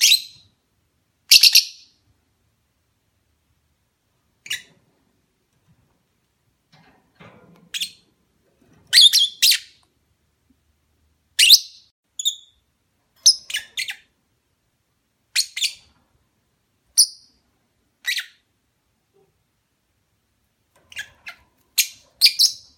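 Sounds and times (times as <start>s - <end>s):
lovebird mating call chirps: 0.0s - 0.5s, 1.3s - 2.0s, 4.4s - 4.7s, 8.9s - 9.8s, 11.4s - 12.6s, 13.2s - 14.1s, 15.3s - 15.9s, 16.9s - 17.4s, 18.0s - 18.4s, 20.9s - 22.7s.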